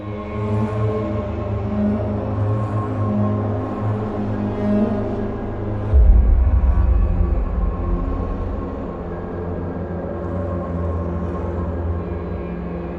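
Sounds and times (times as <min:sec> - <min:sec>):
ambient reverb reflections: 0:00.1 - 0:12.8.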